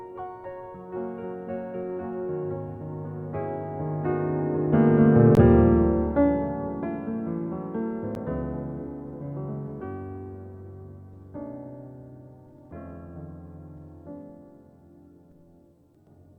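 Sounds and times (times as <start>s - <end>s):
Yamaha C7 grand piano through Waves Doppler effect: 0.0s - 16.3s.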